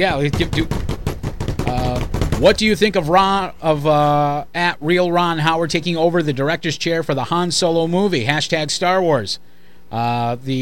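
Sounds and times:
speech: 0.0s - 0.8s, 2.4s - 10.6s
drum roll: 0.0s - 3.3s.

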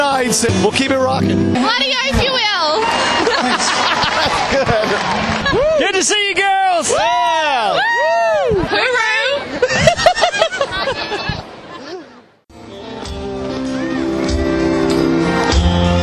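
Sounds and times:
speech: 0.2s - 9.9s
energized stadium concert crowd: 2.3s - 9.0s, 12.6s - 16.0s
laughter: 2.8s - 5.8s, 8.7s - 12.2s.

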